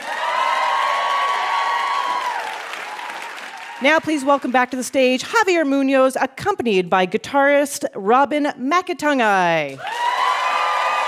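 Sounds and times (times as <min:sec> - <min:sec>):
high whoop: 0:00.0 - 0:03.8, 0:09.8 - 0:11.0
talk show audience cheering as a guest is introduced: 0:00.0 - 0:04.7, 0:09.8 - 0:11.0
speech: 0:03.8 - 0:10.0.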